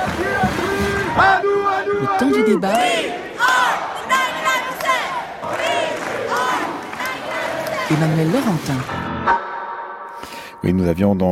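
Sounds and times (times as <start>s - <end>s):
protest crowd chanting slogans: 0.0s - 8.8s
speech: 2.0s - 3.2s, 7.9s - 9.0s, 10.6s - 11.3s.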